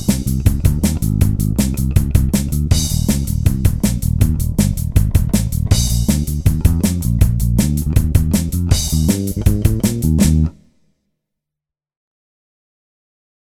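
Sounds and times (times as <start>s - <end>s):
blues music: 0.0s - 10.7s.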